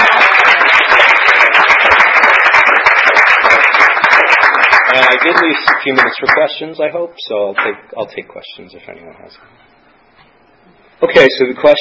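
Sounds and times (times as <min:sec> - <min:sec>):
audience applause: 0:00.0 - 0:06.5
speech: 0:05.2 - 0:09.8, 0:11.0 - 0:11.7.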